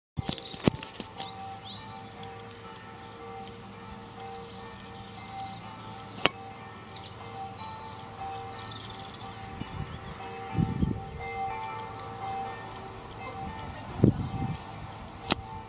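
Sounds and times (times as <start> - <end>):
church bells ringing for mass: 0.2 - 15.6.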